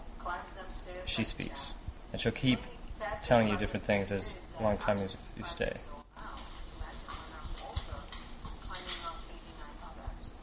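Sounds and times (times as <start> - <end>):
quiet talk: 0.2 - 10.4
speech: 0.4 - 6.0
footsteps climbing stairs in a video game: 6.4 - 9.3.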